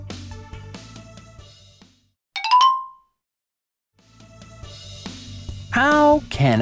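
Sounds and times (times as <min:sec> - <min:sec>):
chime signaling time to turn page: 0:02.4 - 0:03.0
speech: 0:05.8 - 0:06.6.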